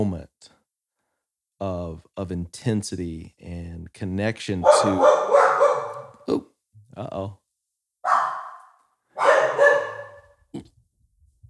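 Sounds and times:
speech: 0.0s - 0.3s, 1.6s - 5.5s, 6.3s - 7.4s
dogs barking: 4.6s - 6.3s, 8.0s - 10.4s.

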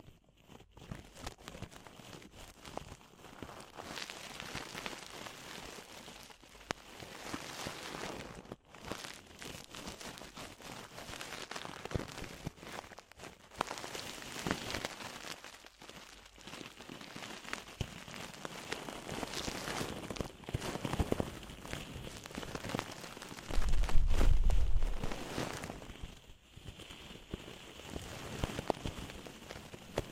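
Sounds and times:
deep ear cleaning crackly scratching and crinkling: 0.0s - 30.1s
louder deeper rubbing: 23.5s - 25.6s.

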